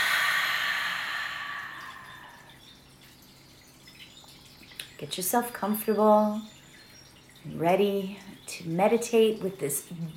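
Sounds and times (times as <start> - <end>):
person exhaling a deep breath during a guided meditation: 0.0 - 2.6
speech: 5.0 - 6.6, 7.4 - 10.1.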